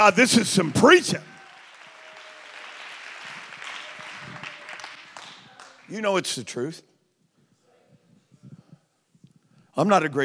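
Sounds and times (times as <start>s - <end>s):
speech: 0.0s - 1.3s, 5.9s - 6.9s, 9.8s - 10.2s
audience clapping hands: 0.0s - 6.0s.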